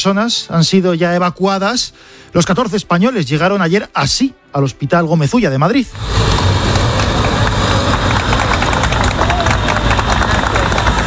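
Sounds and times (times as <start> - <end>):
speech: 0.0 - 6.5
vehicle engine idling: 6.0 - 11.0
crowd clapping outside hospital: 6.6 - 11.0.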